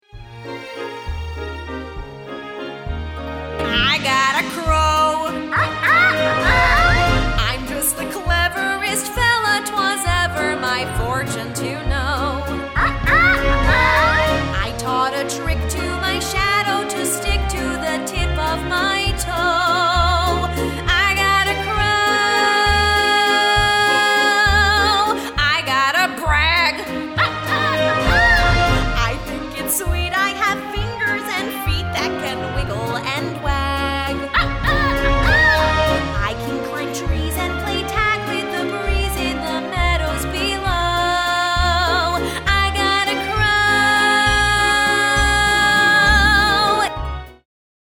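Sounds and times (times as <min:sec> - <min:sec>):
person singing audition song vocal guide: 0:03.7 - 0:47.0.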